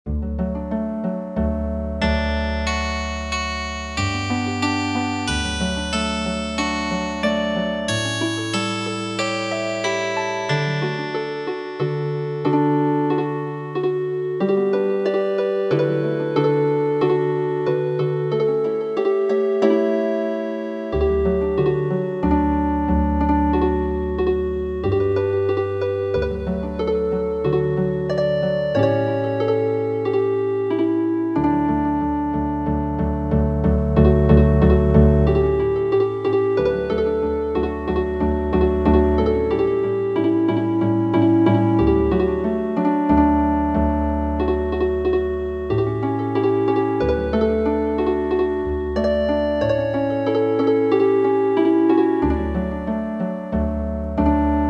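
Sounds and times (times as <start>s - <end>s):
healing harp: 0.1s - 54.6s.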